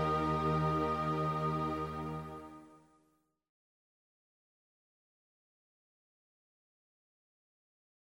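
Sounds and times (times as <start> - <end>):
easy listening and classical music: 0.0 - 2.7.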